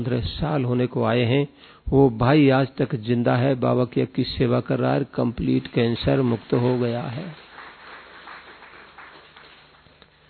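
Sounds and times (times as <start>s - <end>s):
speech: 0.0s - 7.4s
audience clapping softly: 5.7s - 10.2s.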